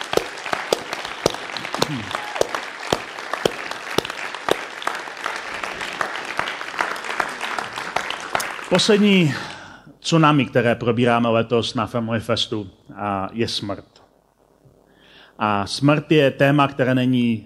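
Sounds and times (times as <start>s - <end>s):
audience applause: 0.0s - 9.3s
speech: 1.9s - 2.2s, 8.7s - 14.0s, 15.4s - 17.4s.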